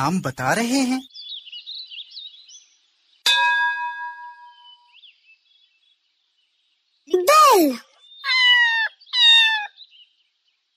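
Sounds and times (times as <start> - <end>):
speech: 0.0 - 1.2, 7.1 - 7.9
cat meowing: 8.2 - 9.8.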